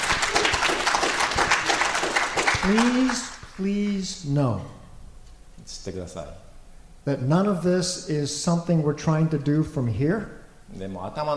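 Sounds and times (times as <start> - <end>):
audience clapping at a church gathering: 0.0 - 3.6
speech: 2.6 - 4.8, 5.6 - 6.4, 7.0 - 11.3.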